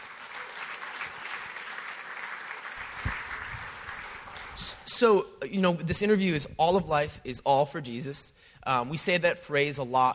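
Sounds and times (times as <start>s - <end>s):
church gathering audience applauding a guest welcomed to the stage: 0.0s - 4.8s
speech: 5.0s - 10.1s.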